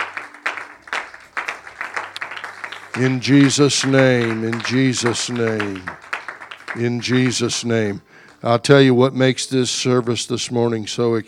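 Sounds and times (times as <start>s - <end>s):
church congregation rhythmic hand clap of praise: 0.0s - 8.6s
speech: 3.0s - 6.1s, 6.8s - 11.2s.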